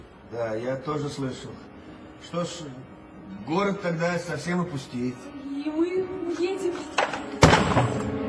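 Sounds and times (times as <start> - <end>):
speech: 0.3 - 7.0
expensive clock falling and breaking: 7.0 - 8.2.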